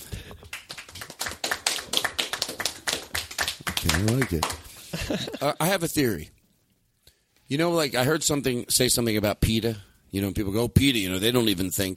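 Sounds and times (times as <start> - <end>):
audience applause: 0.4 - 4.8
speech: 3.8 - 6.4, 7.5 - 11.9.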